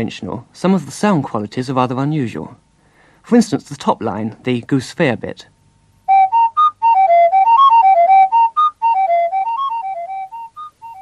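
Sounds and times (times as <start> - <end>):
speech: 0.0 - 2.6, 3.2 - 5.5
flute-like whistling from blowing across a small bottle: 6.1 - 10.9.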